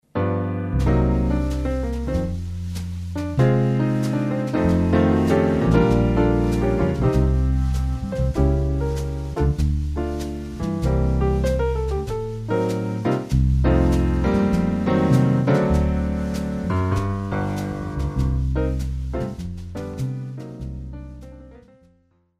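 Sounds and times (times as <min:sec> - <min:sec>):
instrumental music: 0:00.0 - 0:22.2.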